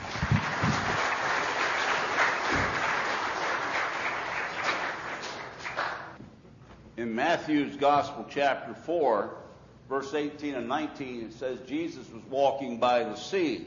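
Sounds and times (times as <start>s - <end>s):
audience applause: 0.0s - 6.2s
speech: 7.0s - 13.6s.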